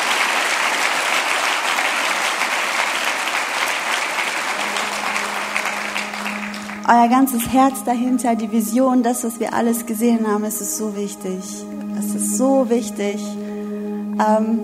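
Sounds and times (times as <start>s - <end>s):
audience applause: 0.0s - 7.4s
speech: 6.9s - 13.4s, 14.2s - 14.6s.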